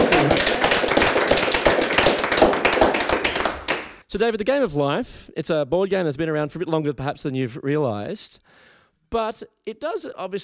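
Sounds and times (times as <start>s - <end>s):
small audience applause: 0.0s - 4.0s
speech: 4.1s - 10.4s.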